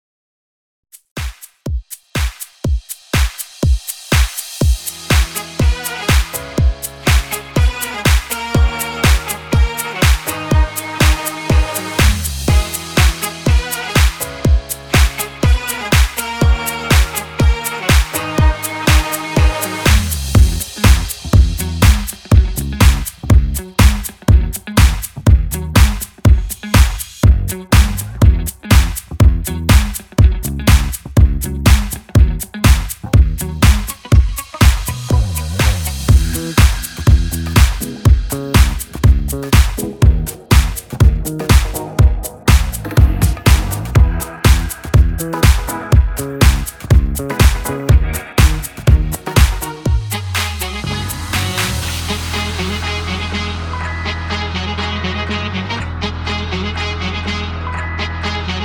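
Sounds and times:
instrumental music: 0:01.0 - 0:58.6.

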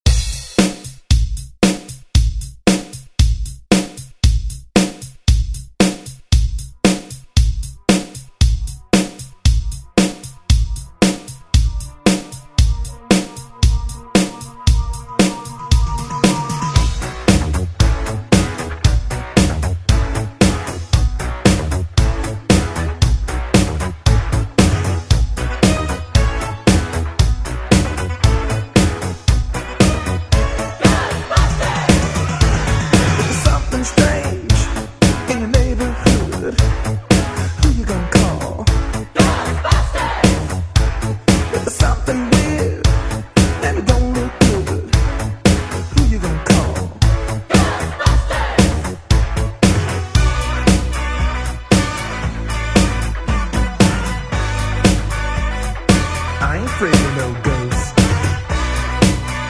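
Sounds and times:
pop drum loop: 0:00.0 - 0:59.4.

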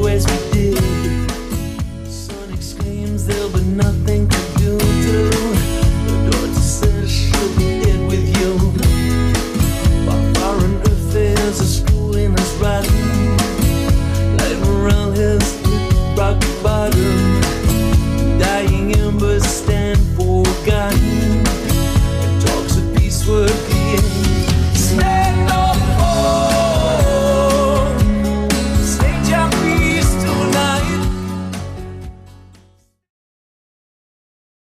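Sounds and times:
80s drum machine beat at 119 bpm: 0:00.0 - 0:32.2.

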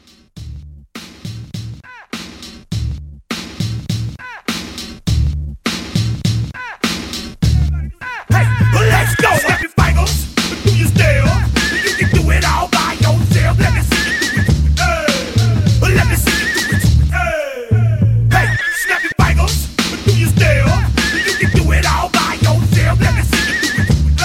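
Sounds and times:
music mashup: 0:00.0 - 0:24.2.

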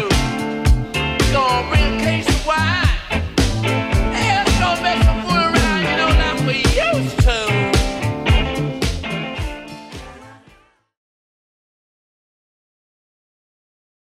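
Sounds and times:
70s drum machine beat: 0:00.0 - 0:10.5.

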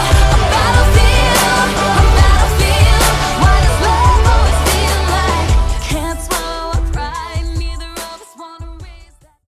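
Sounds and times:
R&B teen pop drum beat: 0:00.0 - 0:09.3.

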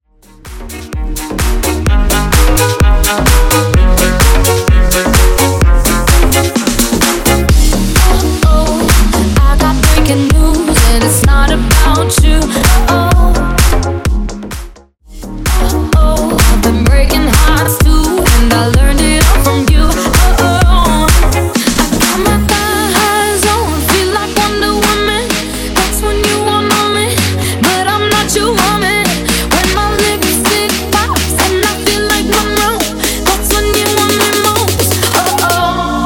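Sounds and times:
drum loop: 0:00.3 - 0:36.0.

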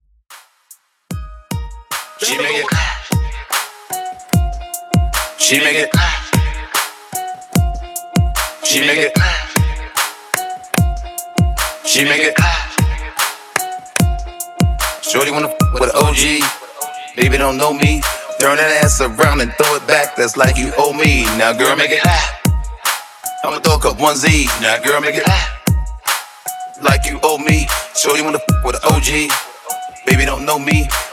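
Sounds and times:
hip hop track with intro and outro at 149 BPM: 0:00.3 - 0:31.1.

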